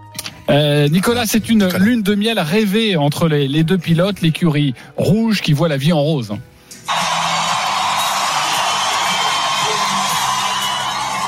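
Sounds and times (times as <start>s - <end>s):
speech: 0.5s - 6.5s
crowd of fans giving an ovation at the O2 Arena, London: 6.9s - 11.2s.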